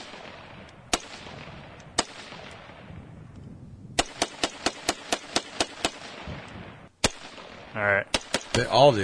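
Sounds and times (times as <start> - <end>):
gunshots during a shooting session: 0.0 - 2.9, 4.0 - 9.0
noise: 0.0 - 9.0
speech: 7.8 - 9.0.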